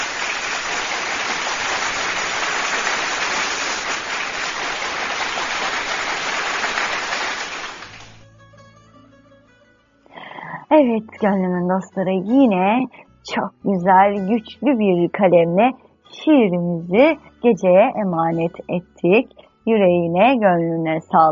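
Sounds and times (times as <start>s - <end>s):
crowd applauding: 0.0s - 8.2s
soft instrumental music with sustained tones: 8.1s - 21.3s
speech: 10.8s - 21.3s.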